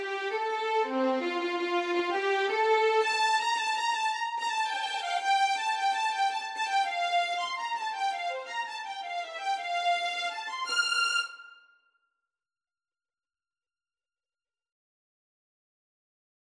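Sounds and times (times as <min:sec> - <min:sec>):
violin: 0:00.0 - 0:11.8.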